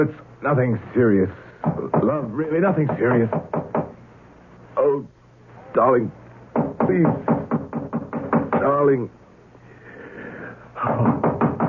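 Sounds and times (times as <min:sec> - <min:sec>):
speech: 0:00.0 - 0:03.6, 0:04.9 - 0:05.2, 0:05.8 - 0:06.2, 0:06.9 - 0:07.3, 0:08.7 - 0:09.2
knocking on a door in a radio drama: 0:01.6 - 0:02.2, 0:02.8 - 0:04.0, 0:06.6 - 0:08.8, 0:10.9 - 0:11.6.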